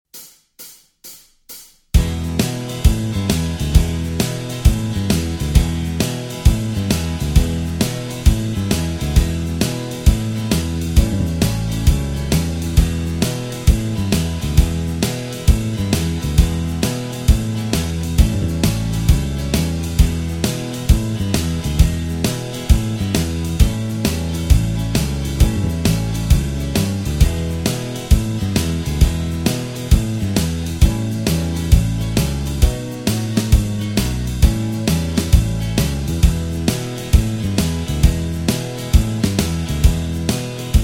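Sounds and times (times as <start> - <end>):
backing track in E without lead guitar: 1.9 - 40.8.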